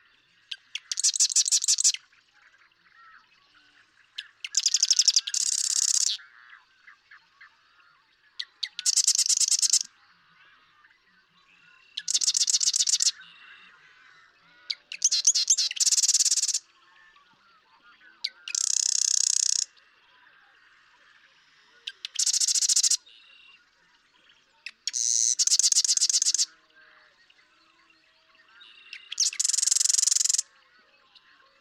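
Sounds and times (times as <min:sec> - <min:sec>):
Marsh Wren rattling song: 0:00.8 - 0:02.0, 0:04.5 - 0:06.2, 0:08.8 - 0:09.9, 0:12.0 - 0:13.1, 0:14.9 - 0:16.6, 0:18.5 - 0:19.7, 0:21.9 - 0:23.0, 0:24.8 - 0:26.5, 0:29.2 - 0:30.4.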